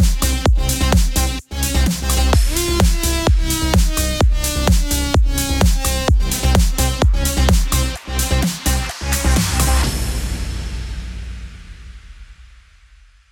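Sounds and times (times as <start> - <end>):
electro house music in C minor: 0.0 - 10.1.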